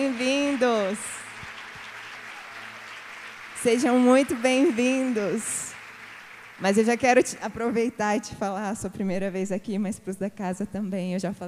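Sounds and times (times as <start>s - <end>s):
audience applause: 0.0s - 7.9s
speech: 0.6s - 1.2s, 3.6s - 5.7s, 6.6s - 11.4s.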